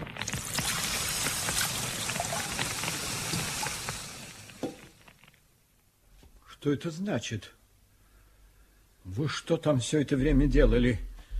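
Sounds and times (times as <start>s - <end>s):
bucket of water poured onto straw: 0.0s - 5.1s
speech: 6.6s - 7.6s, 9.1s - 11.1s.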